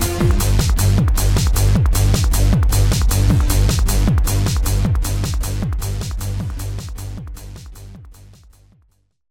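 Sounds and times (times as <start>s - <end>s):
synth trance music: 0.0s - 8.8s.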